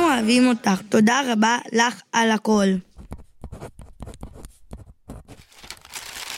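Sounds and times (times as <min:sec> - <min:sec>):
speech: 0:00.2 - 0:02.9
pen scratching on paper handwriting a farewell message: 0:02.9 - 0:05.5.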